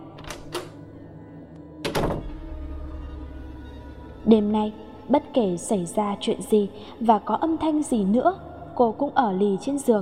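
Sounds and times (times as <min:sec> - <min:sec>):
door slammed shut and locked: 0:01.8 - 0:03.0
speech: 0:04.3 - 0:10.0.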